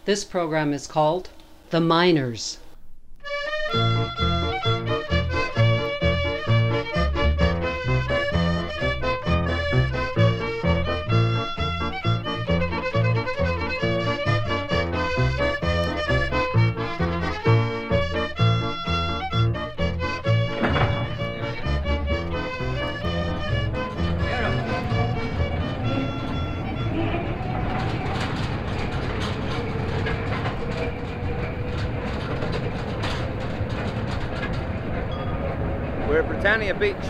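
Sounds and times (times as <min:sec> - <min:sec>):
speech: 0:00.0 - 0:02.6, 0:03.7 - 0:04.3
mine train rumbling through a tunnel with clattering wheels: 0:03.3 - 0:37.0
metallic squeals of mine train: 0:08.1 - 0:37.0.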